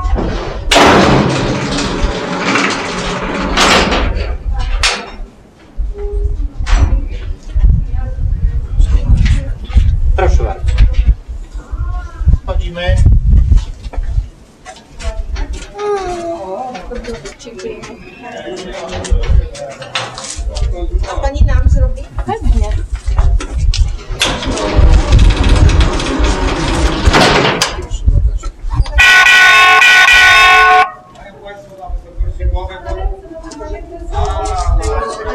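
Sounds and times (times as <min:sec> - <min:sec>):
mine shaft cage riding up in the Kłodawa salt mine, rattling and clanking: 0:00.2 - 0:05.1, 0:24.0 - 0:27.8
people talking: 0:06.0 - 0:13.0, 0:14.7 - 0:23.6, 0:27.7 - 0:35.3.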